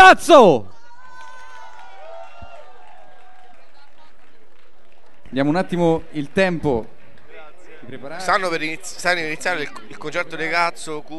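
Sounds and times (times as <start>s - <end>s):
speech: 0.1s - 0.8s, 5.3s - 7.0s, 7.8s - 11.1s
audience applause at a rock concert: 1.1s - 7.3s.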